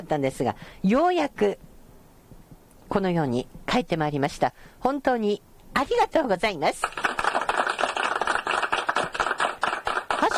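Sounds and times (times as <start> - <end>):
speech: 0.0 - 1.7, 2.9 - 7.0
audience applause: 6.8 - 10.3.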